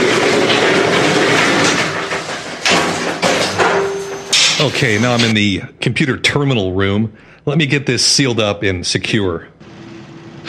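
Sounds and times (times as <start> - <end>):
old elevator rumbling and rattling: 0.0 - 5.3
elevator doors creaking: 0.0 - 5.4
metallic clanks: 0.1 - 5.3
speech: 4.6 - 9.6.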